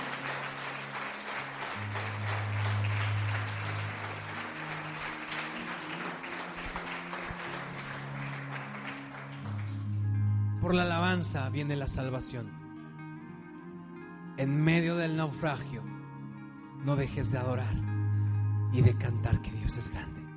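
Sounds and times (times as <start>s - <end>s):
audience applause: 0.0s - 10.0s
speech: 10.7s - 12.6s, 14.4s - 15.9s, 16.8s - 17.9s, 18.7s - 20.2s.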